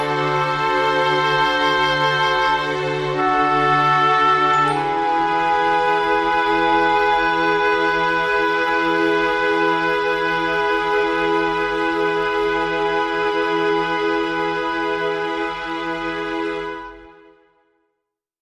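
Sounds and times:
percussion: 0.0 - 13.4
strings: 0.0 - 17.5
woodwinds: 0.0 - 17.6.

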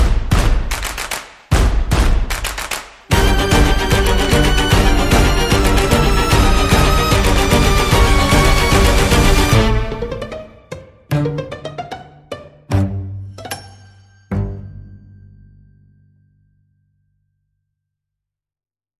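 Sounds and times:
light percussion: 0.0 - 10.4, 12.7 - 15.5.

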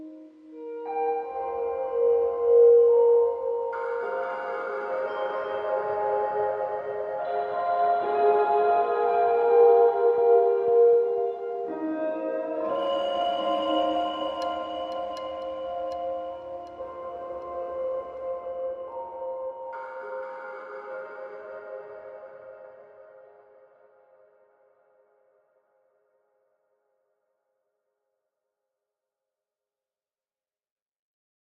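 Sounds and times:
ambient music: 0.0 - 24.3.

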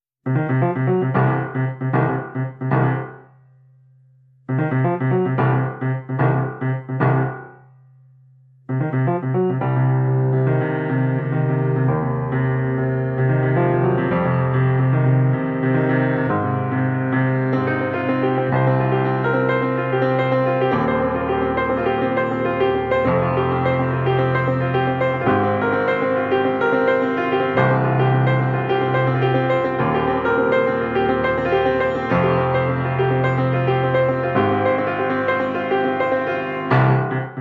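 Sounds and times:
piano: 0.0 - 37.3.

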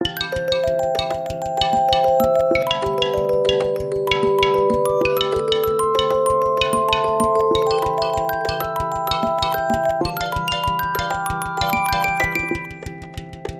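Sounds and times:
suspenseful marimba: 0.0 - 13.5.

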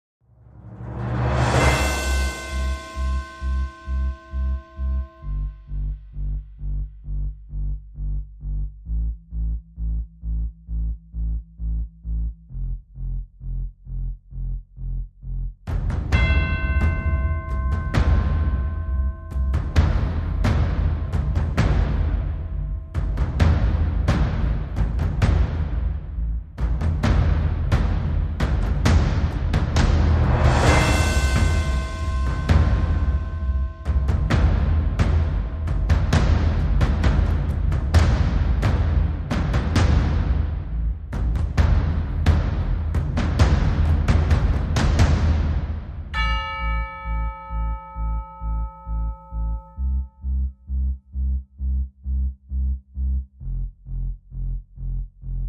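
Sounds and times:
bass: 0.0 - 55.4
drums: 15.7 - 46.2.

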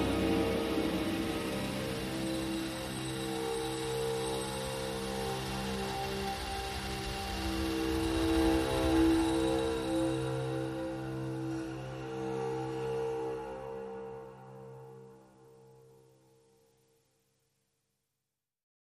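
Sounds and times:
drones: 0.0 - 14.6.

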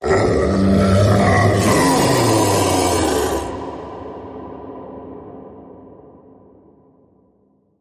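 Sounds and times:
creature beneath the bed: 0.0 - 3.7.

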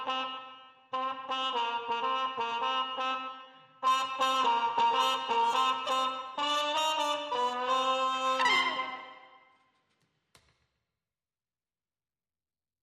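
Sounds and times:
trumpets: 0.0 - 9.4.

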